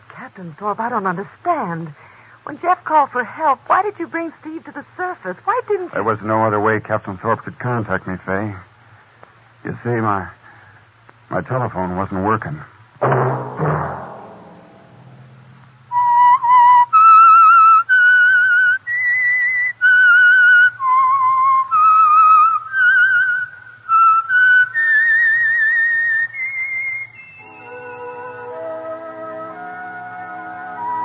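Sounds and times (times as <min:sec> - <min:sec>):
speech: 0:00.3 - 0:08.7, 0:09.6 - 0:10.4, 0:11.3 - 0:13.4
whistled signature tune of a radio program: 0:15.9 - 0:31.0.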